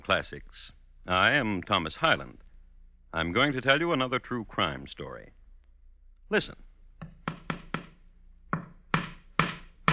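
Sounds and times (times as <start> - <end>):
speech: 0.1 - 2.4, 3.1 - 5.4, 6.3 - 6.6
hammer driving a nail into a wall: 7.0 - 9.9.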